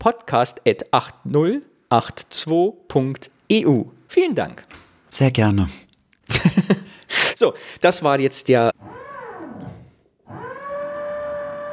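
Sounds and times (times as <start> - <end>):
speech: 0.0 - 6.5, 7.4 - 8.7
power drill drilling nearby: 8.8 - 11.7.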